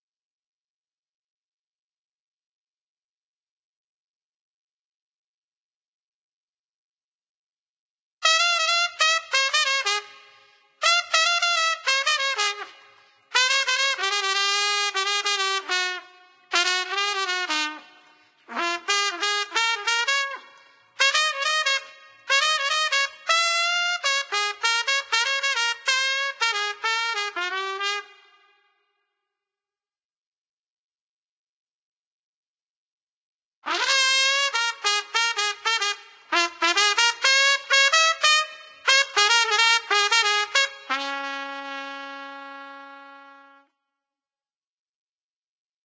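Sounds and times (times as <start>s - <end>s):
trumpet duet: 8.2s - 28.6s, 33.6s - 43.7s.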